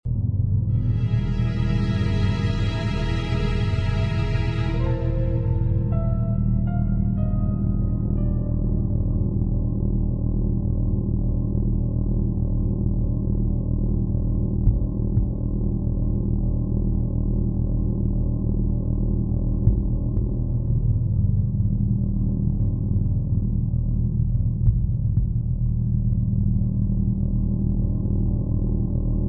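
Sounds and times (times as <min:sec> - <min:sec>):
music: 0:00.1 - 0:29.2.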